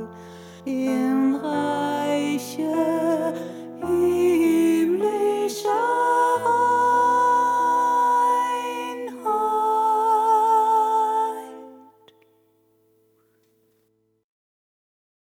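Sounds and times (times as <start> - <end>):
soprano singing: 0.0 - 12.2.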